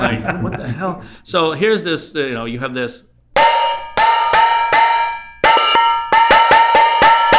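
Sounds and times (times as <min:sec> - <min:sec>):
laughter: 0:00.0 - 0:01.0
speech: 0:00.0 - 0:03.6
metal pots or bowls struck, ringing: 0:03.4 - 0:07.3.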